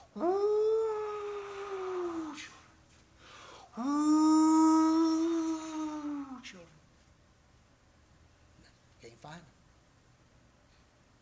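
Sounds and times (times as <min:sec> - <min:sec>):
voice imitating howling wind: 0:00.0 - 0:02.8, 0:03.7 - 0:06.7
speech: 0:00.2 - 0:00.4.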